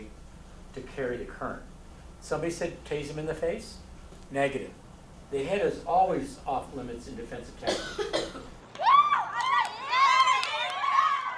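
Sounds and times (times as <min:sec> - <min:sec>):
speech: 0:00.8 - 0:08.5
classmates cheering: 0:08.7 - 0:11.3.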